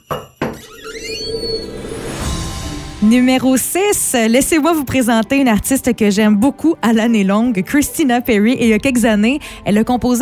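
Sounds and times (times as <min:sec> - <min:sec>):
door opening: 0:00.2 - 0:02.3
speech: 0:03.0 - 0:10.2.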